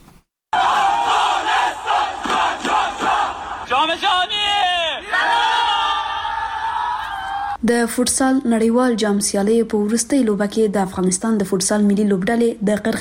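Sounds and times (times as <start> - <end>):
crowd cheering to welcome Afghanistan's national futsal team: 0.5 - 7.6
crowd rhythmic rallying calls: 0.6 - 6.4
speech: 7.6 - 13.0.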